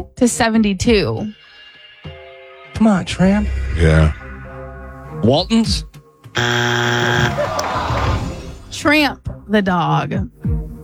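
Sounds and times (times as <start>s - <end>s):
speech: 0.0s - 1.4s, 2.8s - 4.2s, 5.2s - 7.6s, 8.8s - 10.6s
game show buzzer during a TV trivia quiz: 6.4s - 7.5s.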